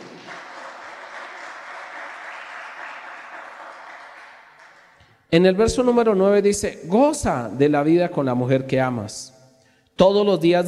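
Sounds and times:
audience applause: 0.0s - 5.0s
speech: 5.3s - 9.4s, 10.0s - 10.6s.

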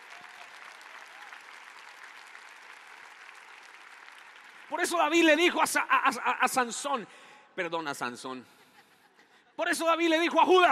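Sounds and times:
audience applause: 0.0s - 5.2s
speech: 4.7s - 8.6s, 9.6s - 10.7s.

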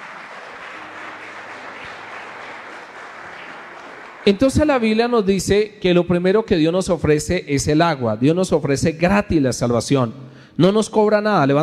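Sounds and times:
audience applauding: 0.0s - 4.9s
speech: 4.2s - 11.6s.

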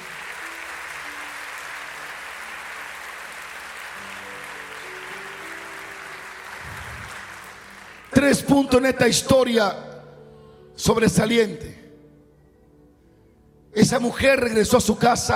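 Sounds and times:
audience applause: 0.0s - 8.4s
speech: 8.2s - 9.9s, 10.8s - 11.7s, 13.8s - 15.3s.

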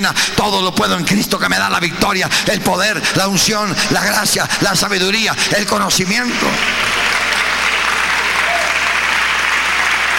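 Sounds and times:
speech: 0.0s - 7.2s
audience applauding: 5.7s - 10.1s.

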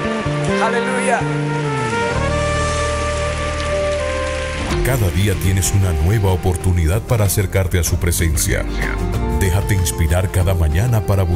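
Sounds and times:
speech: 0.6s - 1.6s, 4.8s - 11.3s
audience applauding: 1.9s - 7.5s.

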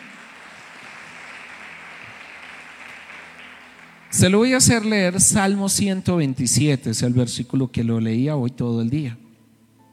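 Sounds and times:
audience applauding: 0.0s - 5.3s
speech: 4.1s - 9.2s.

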